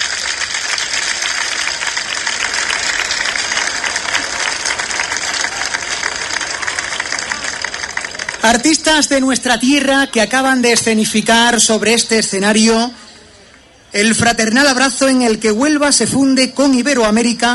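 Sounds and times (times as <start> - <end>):
audience applause: 0.0 - 9.2
speech: 8.4 - 13.0, 14.0 - 17.5.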